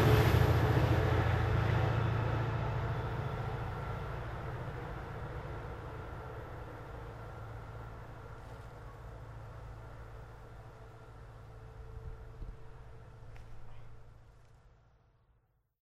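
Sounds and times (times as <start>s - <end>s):
MBTA trains: 0.0s - 15.5s.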